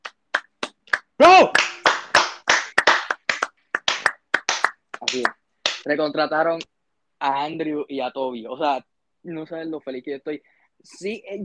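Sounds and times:
crowd clapping: 0.0 - 5.8
speech: 1.2 - 1.6, 5.1 - 11.4.

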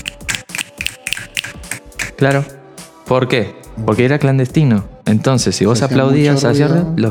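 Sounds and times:
finger snapping: 0.0 - 2.4
speech: 2.2 - 7.1.

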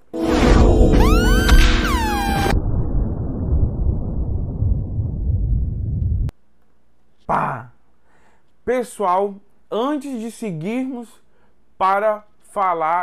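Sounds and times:
siren sound effect: 0.1 - 5.9
speech: 8.7 - 11.2, 11.8 - 13.0.

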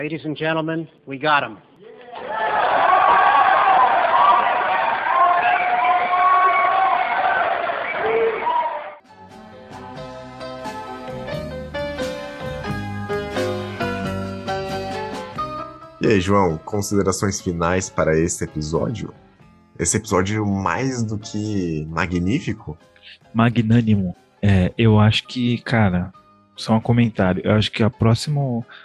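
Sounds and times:
speech: 0.0 - 1.8, 16.0 - 28.8
crowd cheering and shouting: 1.8 - 9.0
applause: 2.1 - 9.0
upbeat music with a steady beat: 9.0 - 28.8.

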